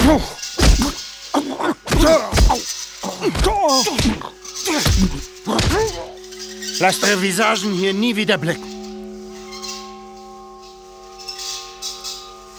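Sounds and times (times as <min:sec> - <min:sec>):
heavy blows striking heads: 0:00.0 - 0:06.2
strained pained vocal grunts and cries: 0:00.0 - 0:06.2
speech: 0:00.1 - 0:00.4, 0:01.3 - 0:06.1, 0:06.8 - 0:08.7.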